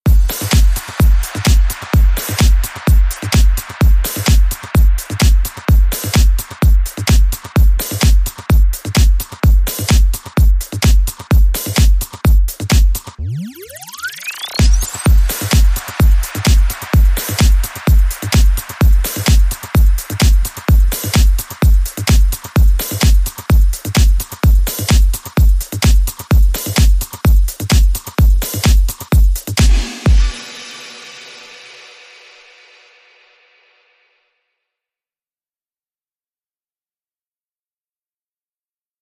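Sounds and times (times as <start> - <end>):
music beat: 0.0 - 32.9.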